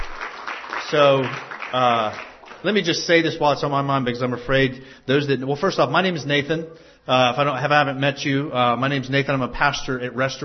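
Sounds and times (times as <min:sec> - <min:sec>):
church audience applauding a choir: 0:00.0 - 0:03.3
speech: 0:00.9 - 0:10.4.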